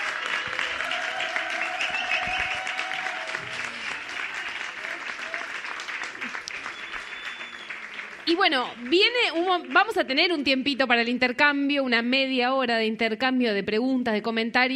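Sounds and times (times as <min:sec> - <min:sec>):
audience applause: 0:00.0 - 0:10.0
speech: 0:08.3 - 0:14.7.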